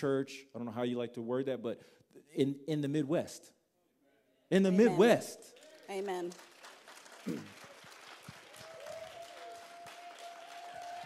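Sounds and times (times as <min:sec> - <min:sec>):
speech: 0:00.0 - 0:03.6, 0:04.5 - 0:06.5, 0:07.2 - 0:07.6
church audience clapping: 0:04.9 - 0:11.0.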